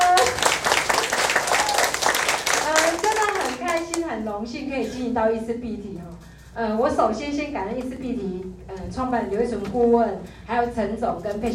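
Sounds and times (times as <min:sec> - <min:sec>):
crowd applauding: 0:00.0 - 0:04.0
speech: 0:04.4 - 0:11.5.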